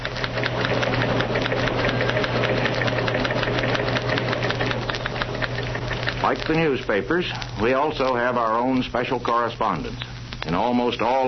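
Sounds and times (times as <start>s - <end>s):
typewriters clattering in newsroom: 0.0s - 7.1s
speech: 6.3s - 11.2s.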